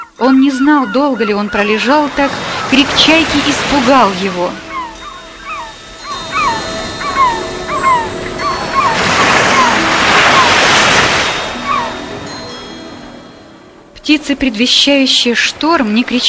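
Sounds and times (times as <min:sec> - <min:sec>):
waves breaking on the shore: 0:00.0 - 0:13.5
speech: 0:00.2 - 0:04.7, 0:14.1 - 0:16.2.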